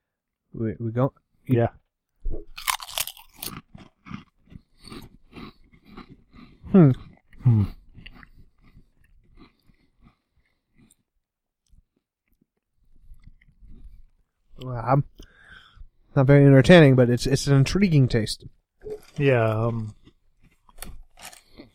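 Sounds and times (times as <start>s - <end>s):
speech: 0.5s - 2.5s, 6.8s - 7.8s, 16.2s - 18.6s, 19.2s - 20.0s
crunching on a snack coated with flavor dust: 2.5s - 14.4s, 18.8s - 21.7s.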